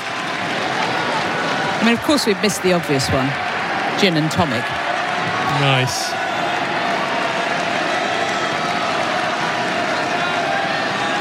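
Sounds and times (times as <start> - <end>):
tennis crowd cheering on a player: 0.0 - 11.2
speech: 1.8 - 4.8, 5.5 - 6.2.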